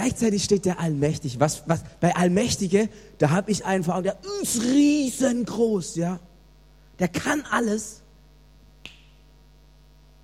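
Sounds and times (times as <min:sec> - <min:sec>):
speech: 0:00.0 - 0:06.3, 0:07.0 - 0:08.0
finger snap: 0:08.8 - 0:09.3.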